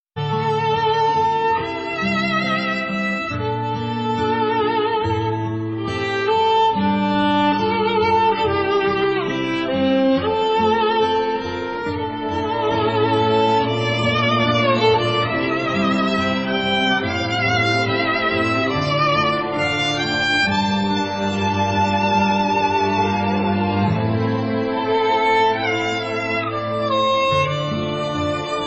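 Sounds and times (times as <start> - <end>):
sad violin: 0.2 - 28.6.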